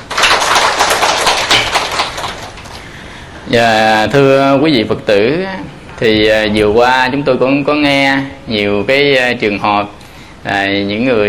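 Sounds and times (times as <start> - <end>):
crowd clapping: 0.0 - 3.0
speech: 3.5 - 11.2.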